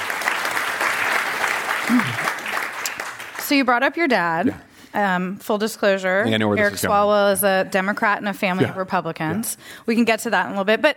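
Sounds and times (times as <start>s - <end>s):
crowd audience applause: 0.0s - 3.5s
speech: 1.9s - 2.3s, 3.5s - 10.9s.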